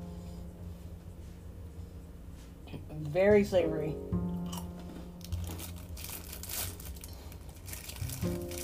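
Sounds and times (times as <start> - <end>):
speech: 3.0 - 4.2
rice cake with soy sauce being crunched and chewed: 4.5 - 8.6.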